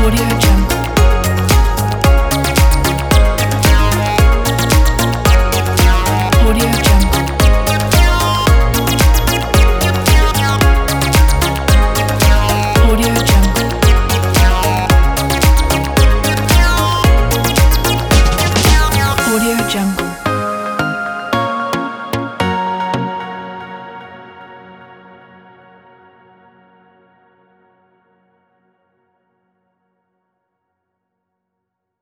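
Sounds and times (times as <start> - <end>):
happy fun baby pop music: 0.0 - 24.4.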